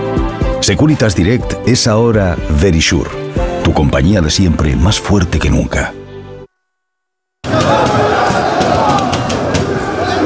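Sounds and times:
speech: 0:00.7 - 0:06.0
Parisian night crowd roar: 0:07.4 - 0:10.2
excited shouts and cheers: 0:07.4 - 0:10.2.

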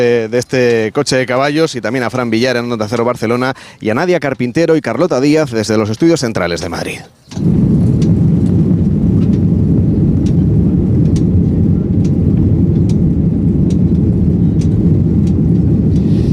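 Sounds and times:
speech: 0:00.0 - 0:08.0
airplane cabin roar in flight: 0:06.8 - 0:16.3
faint clicks: 0:07.3 - 0:09.5, 0:10.1 - 0:16.3.

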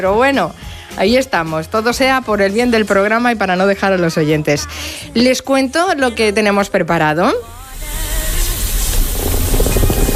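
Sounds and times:
speech: 0:00.0 - 0:07.6
coffee maker hissing: 0:07.8 - 0:10.1
coffee maker gurgling and bubbling: 0:08.5 - 0:10.1.

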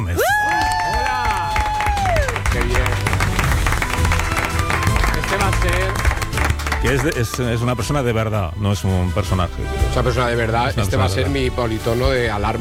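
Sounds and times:
audience clapping: 0:00.0 - 0:08.0
speech: 0:06.9 - 0:12.5.

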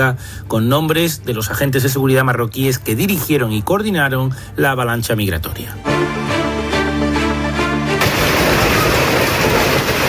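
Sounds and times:
speech: 0:00.0 - 0:06.3
sustained musical tone: 0:05.7 - 0:09.0
heavy hailstorm with hard pellets drumming: 0:08.0 - 0:10.0.

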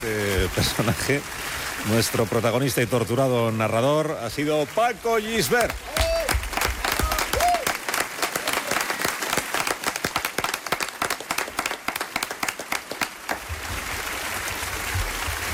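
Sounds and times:
speech: 0:00.0 - 0:06.0
audience applause: 0:04.4 - 0:15.5
audience cheering: 0:05.4 - 0:13.4.

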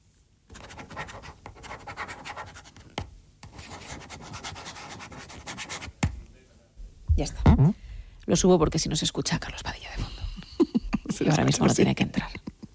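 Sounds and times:
ballpoint pen scratching on paper: 0:00.5 - 0:02.8, 0:03.4 - 0:06.0
speech: 0:07.2 - 0:10.1, 0:11.2 - 0:12.3
laughter: 0:10.4 - 0:12.7.

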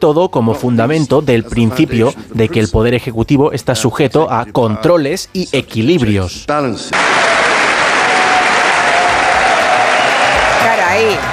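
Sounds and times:
speech: 0:00.0 - 0:07.5
standing ovation applause: 0:06.9 - 0:11.3.

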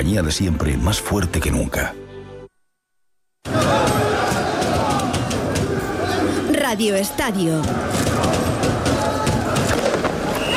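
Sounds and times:
speech: 0:00.0 - 0:02.0, 0:06.7 - 0:08.3
Paris street crowd roar at night after title win: 0:03.4 - 0:10.5.

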